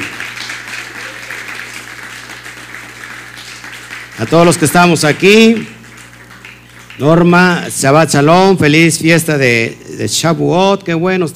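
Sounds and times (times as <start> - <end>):
audience applause: 0.0 - 7.6
low constant hum: 0.0 - 11.3
speech: 4.2 - 5.7, 7.0 - 11.3.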